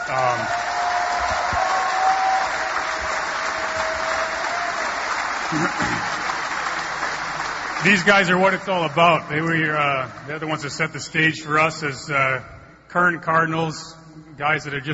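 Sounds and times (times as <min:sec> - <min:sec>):
faint cheering: 0:00.0 - 0:07.2
audience applause: 0:00.0 - 0:10.4
speech: 0:00.1 - 0:00.7, 0:07.8 - 0:14.9.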